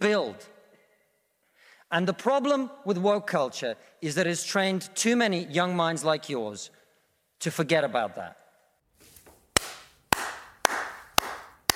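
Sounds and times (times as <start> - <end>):
speech: 0.0 - 0.6, 1.9 - 6.8, 7.4 - 8.4
slow hand clapping: 9.5 - 11.7.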